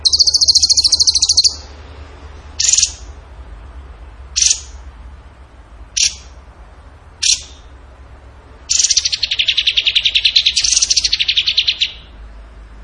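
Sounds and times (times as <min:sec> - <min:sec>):
bird chirps: 0:00.0 - 0:01.7, 0:02.6 - 0:03.1, 0:04.4 - 0:04.8, 0:06.0 - 0:06.3, 0:07.2 - 0:07.7, 0:08.7 - 0:12.2
soft background hiss: 0:00.0 - 0:12.8.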